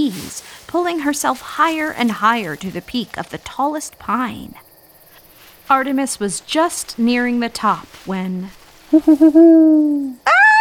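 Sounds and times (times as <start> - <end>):
speech: 0.0 - 4.6, 5.7 - 10.5
owl call: 8.9 - 10.5.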